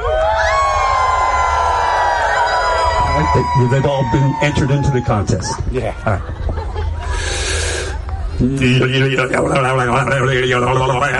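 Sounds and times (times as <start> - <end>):
crowd imitating a full moon wolf howl: 0.0 - 5.3
speech: 3.3 - 6.4, 8.4 - 11.1
laughter: 5.8 - 7.4.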